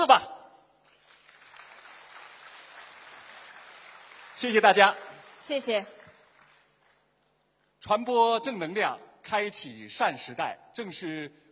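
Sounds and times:
audience applause: 0.9 - 7.0
speech: 4.4 - 6.0, 7.8 - 11.4.

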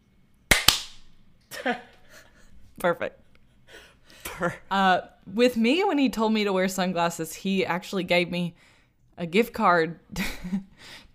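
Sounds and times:
high five hand slap: 0.5 - 1.1
speech: 1.6 - 1.9, 2.8 - 3.2, 4.4 - 11.1.

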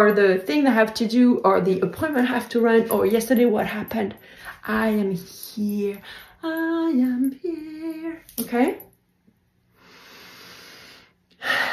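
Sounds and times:
speech: 0.0 - 8.9
deep breathing: 9.7 - 11.7.

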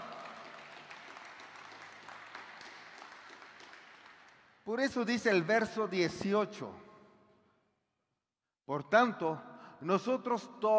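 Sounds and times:
audience applause: 0.0 - 4.5
speech: 4.7 - 6.8, 8.7 - 10.7.

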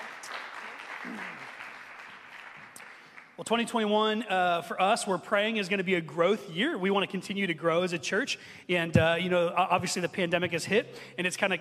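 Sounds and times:
audience applause at a church gathering: 0.0 - 3.4
speech: 3.4 - 11.6.

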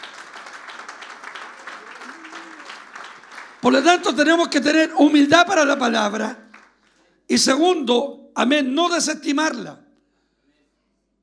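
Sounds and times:
audience applause: 0.0 - 4.9
speech: 3.6 - 6.4, 7.3 - 9.8.

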